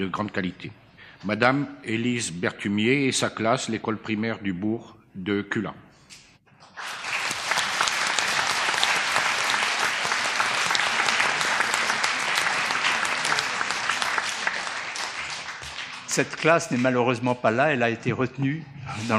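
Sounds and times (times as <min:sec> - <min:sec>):
speech: 0:00.0 - 0:05.9, 0:16.2 - 0:19.1
audience applause: 0:06.6 - 0:16.6.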